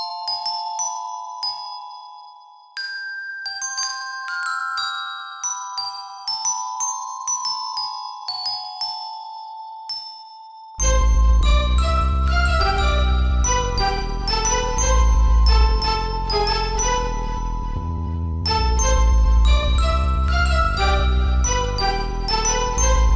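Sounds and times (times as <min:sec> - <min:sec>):
glockenspiel: 0:00.0 - 0:23.1
strings playing: 0:10.8 - 0:23.1.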